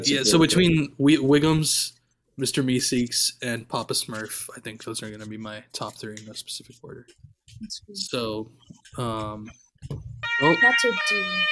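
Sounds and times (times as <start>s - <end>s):
speech: 0.0s - 11.5s
electronic alarm siren: 10.2s - 11.5s.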